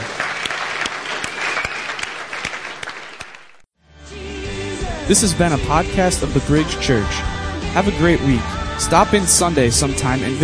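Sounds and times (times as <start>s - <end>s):
crowd clapping: 0.0s - 3.7s
soft music: 3.8s - 10.4s
speech: 5.1s - 10.4s.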